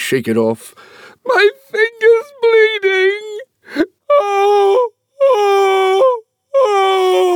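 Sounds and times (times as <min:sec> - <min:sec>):
speech: 0:00.1 - 0:04.6
woman screaming shrilly: 0:01.3 - 0:03.4, 0:04.1 - 0:07.3.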